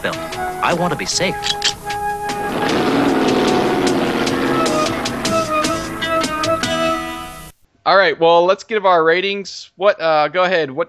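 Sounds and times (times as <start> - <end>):
speech: 0.0 - 1.7, 7.9 - 10.8
car engine revving as it drives off: 0.0 - 7.5
sharp rhythmic clicks and knocks: 0.0 - 7.6.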